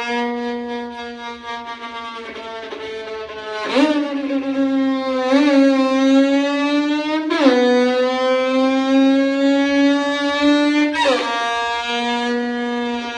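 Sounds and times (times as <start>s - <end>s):
violin: 0.0s - 13.1s
motorcycle: 5.3s - 13.1s.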